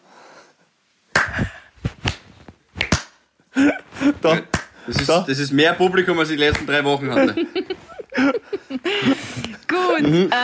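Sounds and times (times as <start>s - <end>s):
slow clap: 1.1s - 3.2s, 4.4s - 5.2s, 6.5s - 6.7s
speech: 4.2s - 7.6s, 9.8s - 10.4s
laughter: 7.0s - 10.4s.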